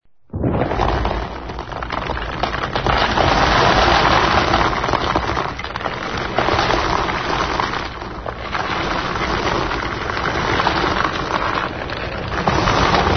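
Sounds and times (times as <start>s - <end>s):
crushing: 0.3s - 13.1s.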